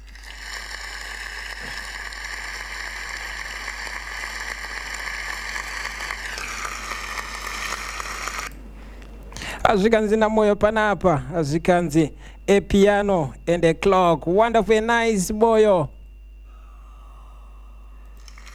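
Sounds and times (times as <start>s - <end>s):
applause: 0.2s - 8.1s
speech: 9.7s - 16.0s.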